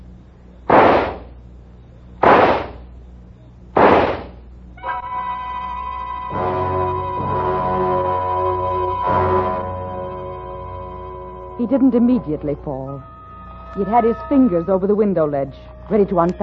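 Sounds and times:
gunshots: 0.7s - 1.4s, 2.2s - 2.9s, 3.8s - 4.4s
swelling musical tones: 4.8s - 16.4s
speech: 11.6s - 16.4s.

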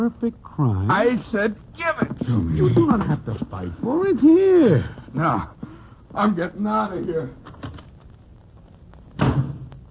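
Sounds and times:
speech: 0.0s - 7.5s
door slammed shut: 9.2s - 9.7s.

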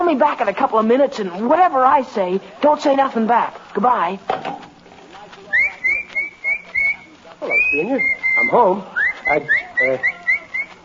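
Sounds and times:
speech: 0.1s - 4.6s, 7.4s - 10.2s
person whistling as if calling a dog: 5.6s - 10.8s.

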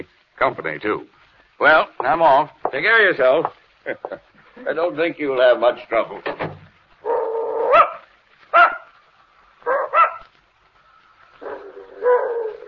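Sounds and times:
speech: 0.4s - 6.3s
old dog barking and whimpering: 7.0s - 9.0s, 9.6s - 10.4s, 11.3s - 12.6s.

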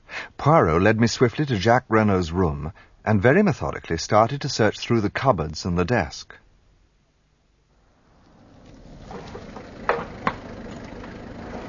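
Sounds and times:
speech: 0.4s - 6.4s
car driving up: 7.8s - 11.6s.

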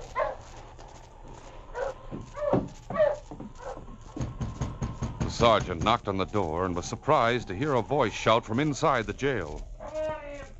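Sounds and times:
sled dog barking: 0.0s - 0.5s, 1.8s - 3.9s
speech: 5.4s - 9.7s.

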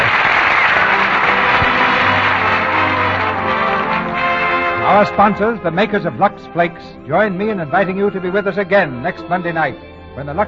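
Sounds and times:
applause: 0.0s - 4.8s
speech: 5.0s - 10.4s.

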